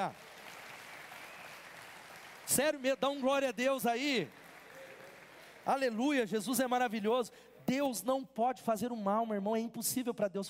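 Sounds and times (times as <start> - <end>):
speech: 0.0 - 0.3, 2.5 - 4.4, 5.6 - 10.4
audience applauding: 0.0 - 6.0.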